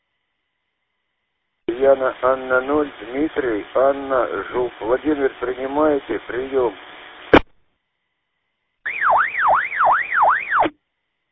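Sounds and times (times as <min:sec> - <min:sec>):
speech: 0:01.8 - 0:06.9
ambulance or police siren passing: 0:08.9 - 0:10.7.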